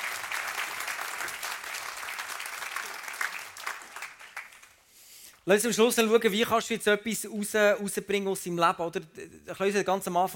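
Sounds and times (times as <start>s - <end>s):
audience applause: 0.0s - 4.8s
speech: 5.5s - 10.3s.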